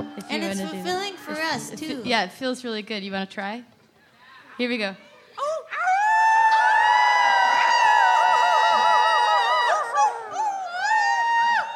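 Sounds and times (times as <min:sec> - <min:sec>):
speech: 0:00.4 - 0:03.8, 0:04.6 - 0:05.1
crowd howling like wolves: 0:05.8 - 0:11.7.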